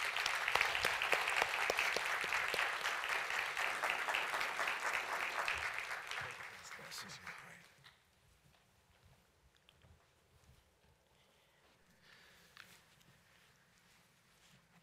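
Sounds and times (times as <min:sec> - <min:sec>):
crowd clapping: 0:00.0 - 0:07.8.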